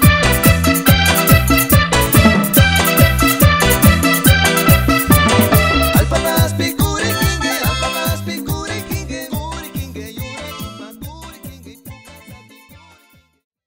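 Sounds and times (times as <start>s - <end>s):
simple music intro at 142 BPM: 0.1s - 8.1s.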